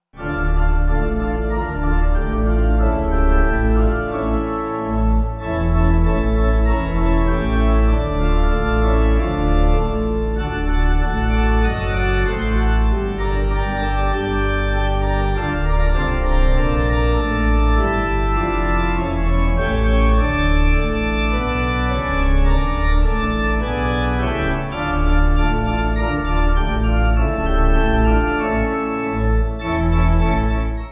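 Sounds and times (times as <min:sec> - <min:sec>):
pipe organ hymn backing: 0:00.2 - 0:30.9.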